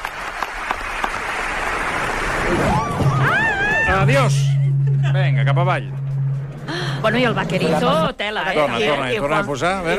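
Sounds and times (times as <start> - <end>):
audience applause: 0.0 - 3.9
speech: 2.5 - 3.1, 4.0 - 4.5, 5.2 - 6.0, 6.7 - 9.9.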